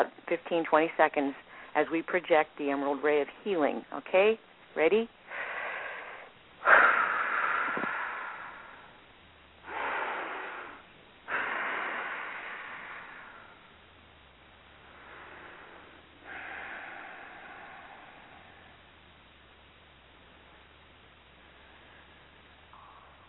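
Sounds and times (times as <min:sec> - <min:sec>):
speech: 0:00.0 - 0:05.2
slow deep breaths during a group meditation and healing session: 0:01.4 - 0:01.8, 0:05.2 - 0:23.2.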